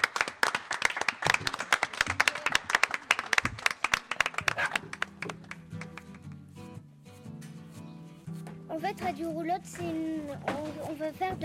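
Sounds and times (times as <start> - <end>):
audience applause: 0.0 - 6.2
speech: 9.0 - 11.4.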